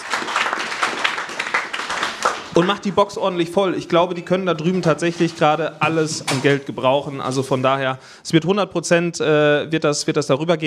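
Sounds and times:
audience applause: 0.0s - 3.0s
speech: 2.6s - 10.6s.

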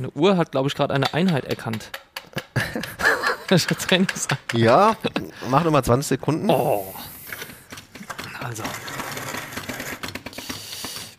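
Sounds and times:
speech: 0.0s - 2.1s, 2.8s - 7.1s, 8.5s - 8.9s
laughter: 2.2s - 5.9s
coffee grinder grinding beans to a fine espresso grind at slow speed: 6.6s - 11.1s.

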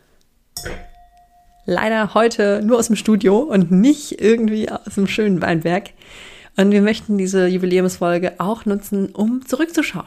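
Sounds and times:
glasses of sparkling wine clinking: 0.6s - 1.7s
speech: 1.7s - 10.0s.

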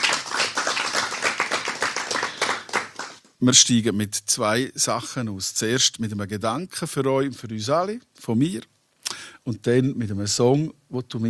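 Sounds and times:
crowd clapping: 0.0s - 3.3s
speech: 3.4s - 8.7s, 9.5s - 11.2s.

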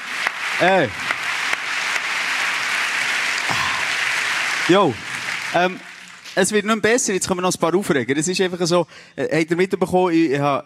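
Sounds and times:
crowd clapping: 0.0s - 7.0s
speech: 0.6s - 1.1s, 4.7s - 10.6s.

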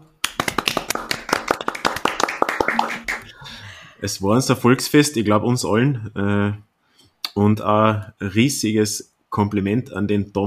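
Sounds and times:
audience applause: 0.2s - 3.4s
speech: 4.0s - 6.7s, 7.4s - 10.4s.

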